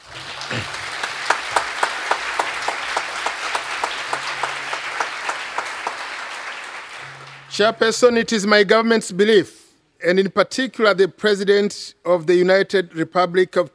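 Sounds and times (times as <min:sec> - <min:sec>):
audience clapping: 0:00.0 - 0:08.0
speech: 0:00.5 - 0:00.8, 0:07.6 - 0:13.7.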